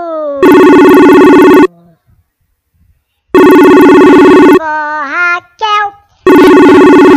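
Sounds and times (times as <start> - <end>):
telephone ringing: 0.4 - 1.7, 3.4 - 4.6, 6.3 - 7.1.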